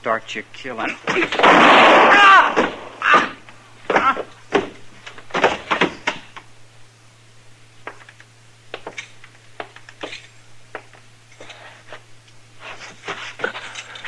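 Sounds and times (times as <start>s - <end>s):
speech: 0.0s - 3.3s
gunshot in a Western standoff: 1.2s - 2.9s.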